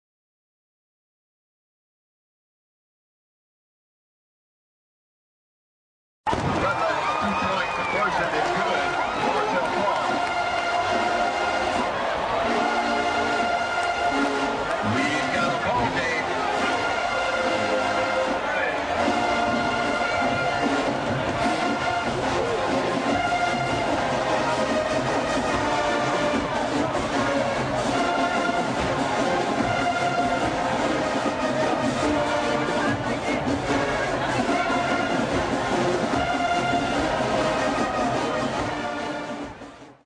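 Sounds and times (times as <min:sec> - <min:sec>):
marching band: 0:06.3 - 0:40.0.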